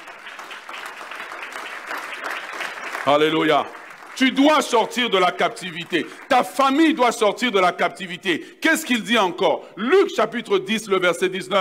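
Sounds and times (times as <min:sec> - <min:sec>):
church congregation clapping and acclaiming the Lord during a sermon: 0:00.0 - 0:08.4
speech: 0:03.1 - 0:11.5.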